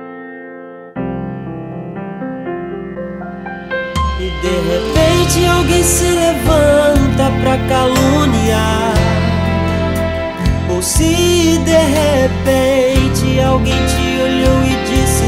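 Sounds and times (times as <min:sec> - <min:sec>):
gospel remix: 0:03.4 - 0:15.2.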